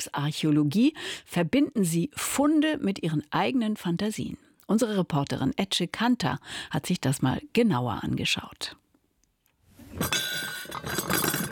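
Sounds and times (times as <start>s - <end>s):
speech: 0.0s - 8.8s, 10.0s - 11.1s
white porcelain dishes with gold rim clinking as set down on cardboard: 9.9s - 11.5s.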